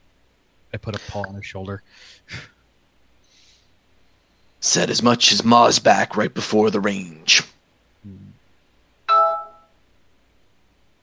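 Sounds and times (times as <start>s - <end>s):
speech: 0.7s - 2.6s, 4.6s - 8.3s
cell phone ringing: 9.1s - 9.8s.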